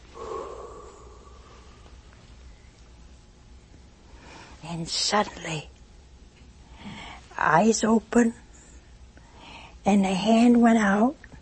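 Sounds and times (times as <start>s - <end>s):
voice imitating breath being blown into someone: 0.2s - 1.7s
speech: 4.7s - 5.7s, 7.4s - 8.4s, 9.8s - 11.2s.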